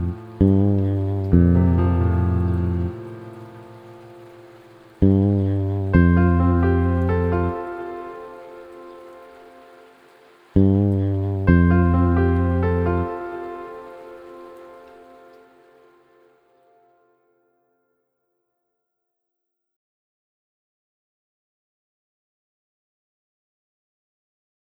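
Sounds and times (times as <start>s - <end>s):
haunting rain: 0.0s - 16.6s.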